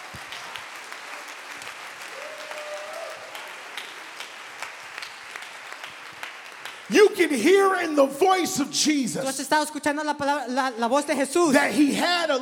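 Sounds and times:
audience clapping hands: 0:00.0 - 0:09.0
speech: 0:06.9 - 0:12.3.

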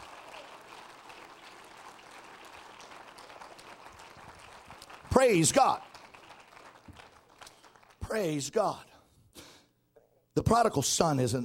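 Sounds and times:
audience clapping hands: 0:00.0 - 0:08.6
speech: 0:05.2 - 0:05.9, 0:08.1 - 0:08.9, 0:10.4 - 0:11.4.

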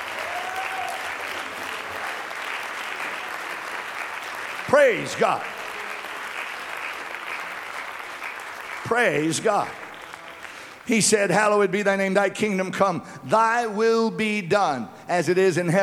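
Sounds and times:
audience clapping hands: 0:00.0 - 0:11.7
speech: 0:04.7 - 0:05.5, 0:08.9 - 0:09.8, 0:10.9 - 0:15.8.

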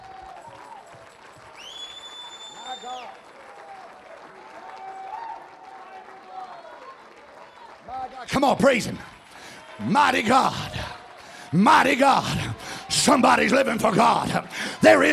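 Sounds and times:
audience clapping hands: 0:00.0 - 0:15.1
speech: 0:02.8 - 0:03.4, 0:08.0 - 0:09.2, 0:09.8 - 0:10.8, 0:11.5 - 0:15.1.

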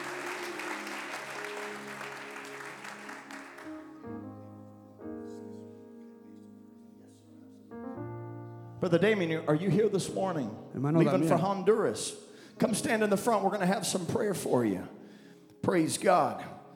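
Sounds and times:
church congregation clapping during a bilingual service: 0:00.0 - 0:04.3
sustained keyboard chords: 0:00.0 - 0:16.7
speech: 0:08.8 - 0:15.0, 0:15.7 - 0:16.5.

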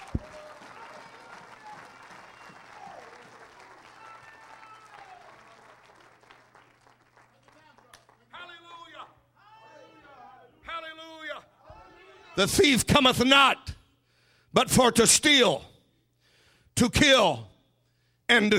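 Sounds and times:
audience clapping hands: 0:00.0 - 0:08.6
speech: 0:12.4 - 0:13.6, 0:14.6 - 0:15.7, 0:16.8 - 0:17.5, 0:18.3 - 0:18.5.

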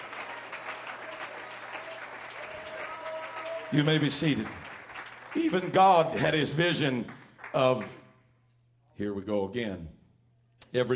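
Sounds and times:
audience clapping hands: 0:00.0 - 0:08.1
speech: 0:03.7 - 0:04.6, 0:05.3 - 0:08.0, 0:09.0 - 0:10.0, 0:10.7 - 0:10.9.

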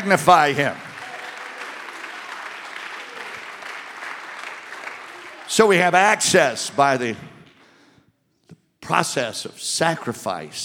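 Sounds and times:
speech: 0:00.0 - 0:00.9, 0:05.6 - 0:07.4, 0:08.8 - 0:10.6
audience clapping hands: 0:00.0 - 0:07.6.

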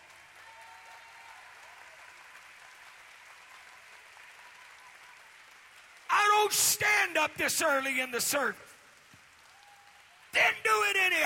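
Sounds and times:
audience clapping hands: 0:00.0 - 0:11.2
speech: 0:06.4 - 0:08.7.

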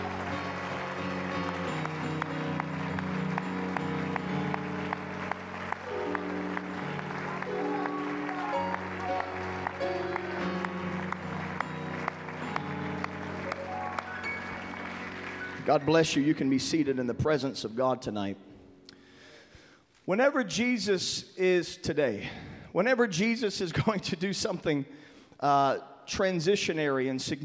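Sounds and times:
audience clapping hands in praise: 0:00.0 - 0:16.8
speech: 0:15.7 - 0:18.5, 0:20.1 - 0:27.4.

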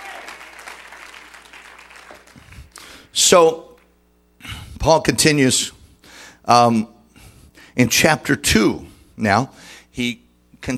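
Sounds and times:
audience clapping hands: 0:00.0 - 0:03.0
speech: 0:03.2 - 0:03.7, 0:04.8 - 0:05.8, 0:06.4 - 0:06.9, 0:07.8 - 0:10.7.

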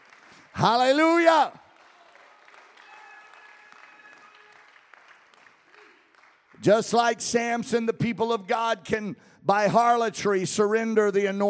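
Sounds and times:
audience clapping hands: 0:00.0 - 0:07.2
speech: 0:00.6 - 0:01.6, 0:06.6 - 0:11.4.

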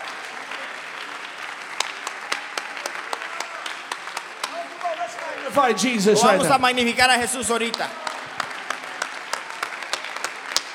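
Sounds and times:
church congregation clapping in praise: 0:00.0 - 0:10.7
speech: 0:05.5 - 0:08.0.

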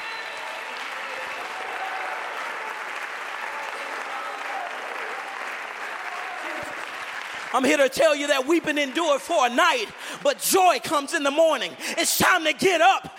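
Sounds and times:
audience clapping hands: 0:00.0 - 0:13.0
speech: 0:07.5 - 0:13.1.

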